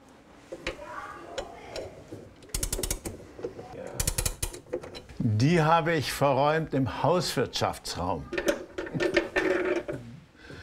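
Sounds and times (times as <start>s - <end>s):
antique clock mechanism being wound: 2.5s - 3.1s, 4.0s - 4.6s
speech: 5.3s - 9.1s.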